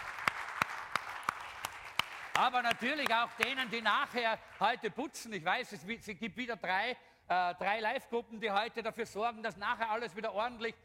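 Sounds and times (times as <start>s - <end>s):
audience applause: 0.0s - 4.8s
speech: 2.4s - 10.8s.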